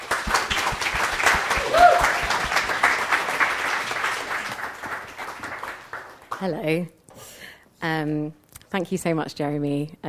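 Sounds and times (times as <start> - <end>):
church congregation clapping to welcome a woman: 0.0 - 6.5
speech: 6.4 - 7.0, 7.8 - 10.0.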